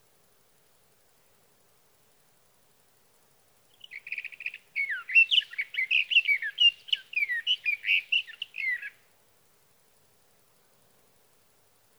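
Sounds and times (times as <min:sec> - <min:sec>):
sage thrasher song: 0:03.7 - 0:09.0.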